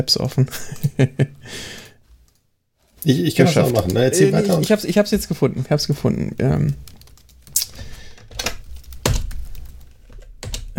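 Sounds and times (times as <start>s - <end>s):
speech: 0.0s - 1.8s, 3.0s - 6.9s
laughter: 3.1s - 4.8s
typing on a computer keyboard: 6.5s - 7.6s, 8.2s - 10.7s.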